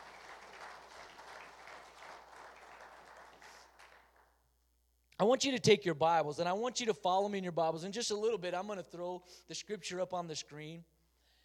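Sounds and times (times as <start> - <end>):
audience hand clapping applause: 0.0 - 4.4
speech: 5.2 - 10.9.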